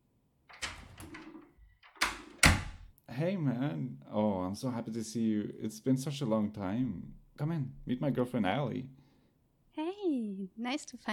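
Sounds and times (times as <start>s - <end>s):
door being opened for a visitor: 0.5s - 2.9s
speech: 3.2s - 9.0s, 10.4s - 11.1s.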